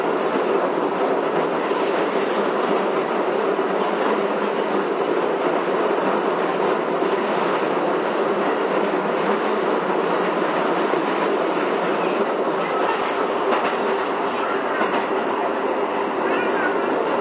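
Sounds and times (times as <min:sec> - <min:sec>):
Keio 9000 series train rumbling: 0:00.0 - 0:17.1.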